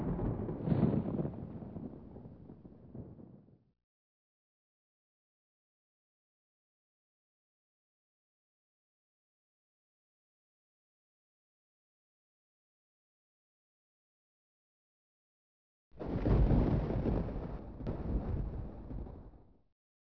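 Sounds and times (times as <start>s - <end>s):
thunder in a storm: 0.0s - 3.6s, 16.0s - 19.6s.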